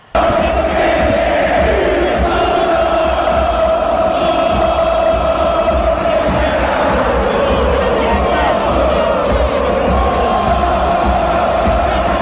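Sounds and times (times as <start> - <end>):
huge stadium crowd chanting: 0.0 - 12.1.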